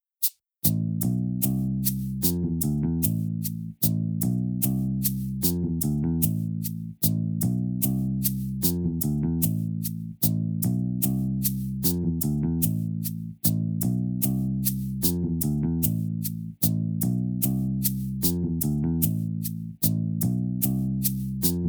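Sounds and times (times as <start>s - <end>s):
bass loop: 0.7s - 21.6s.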